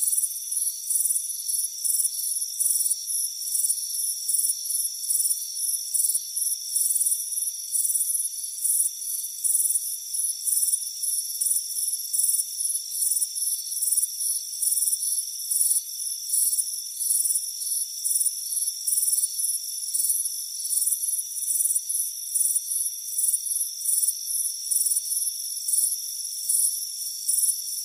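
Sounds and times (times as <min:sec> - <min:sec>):
crickets chirping: 0:00.0 - 0:27.8.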